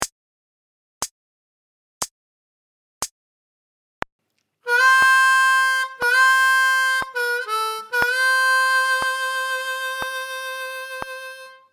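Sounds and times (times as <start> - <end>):
slow harmonica lick: 4.7 - 11.7.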